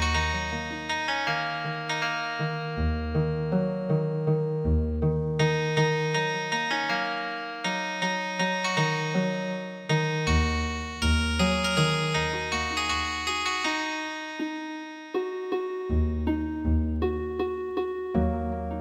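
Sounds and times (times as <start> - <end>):
healing harp music: 0.0 - 18.0.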